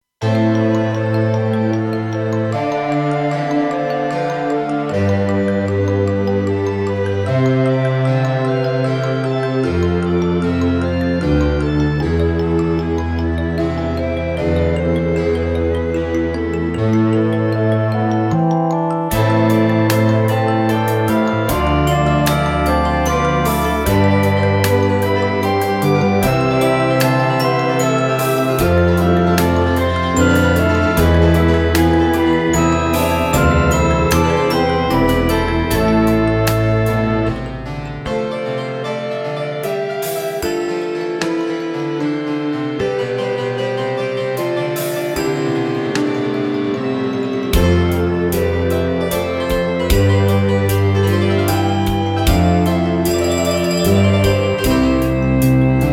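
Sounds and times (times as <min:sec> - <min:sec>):
minuet: 0:00.2 - 0:55.9.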